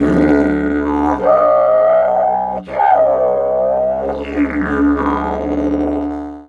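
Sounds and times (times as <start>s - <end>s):
didgeridoo: 0.0s - 6.4s.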